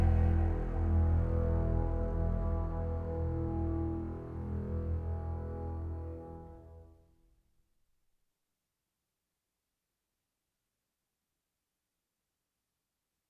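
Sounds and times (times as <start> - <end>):
epic choral action singing: 0.0 - 3.2
orchestra playing epic action music: 0.0 - 6.1.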